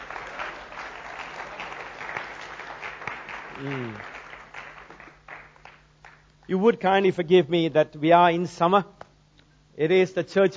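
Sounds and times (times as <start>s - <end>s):
audience applause: 0.0s - 6.2s
speech: 3.6s - 4.2s, 6.5s - 9.0s, 9.8s - 10.5s.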